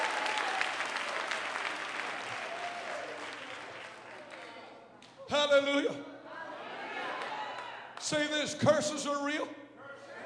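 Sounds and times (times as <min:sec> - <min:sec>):
audience hand clapping: 0:00.0 - 0:04.5
speech: 0:05.5 - 0:06.1, 0:08.1 - 0:09.6.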